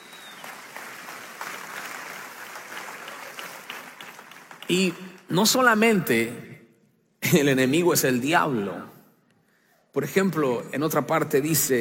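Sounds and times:
audience applause: 0:00.0 - 0:05.3
speech: 0:04.7 - 0:06.5, 0:07.3 - 0:08.9, 0:10.0 - 0:11.7.

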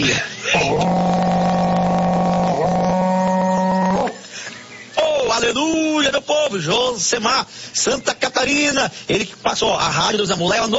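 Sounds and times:
speech: 0:00.0 - 0:00.9, 0:05.5 - 0:10.7
berrante cattle horn being blown: 0:00.6 - 0:04.2.

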